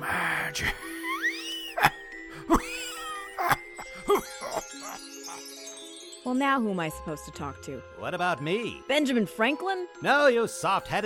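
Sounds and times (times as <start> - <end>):
speech: 0.5 - 0.9, 6.3 - 11.0
tiny bells jingling: 2.6 - 6.9.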